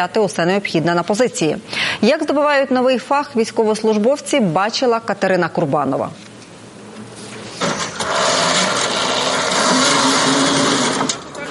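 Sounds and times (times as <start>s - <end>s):
speech: 0.0s - 6.3s
unmanned ground robot vehicle engine whining: 7.7s - 11.5s.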